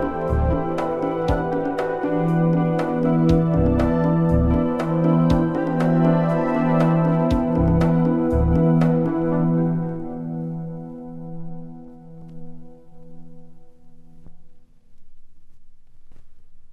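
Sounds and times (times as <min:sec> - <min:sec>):
song: 0:00.0 - 0:12.4.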